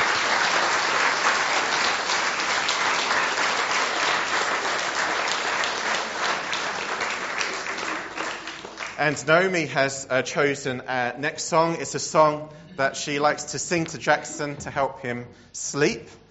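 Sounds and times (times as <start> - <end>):
audience applause: 0.0 - 9.2
speech: 9.0 - 16.2.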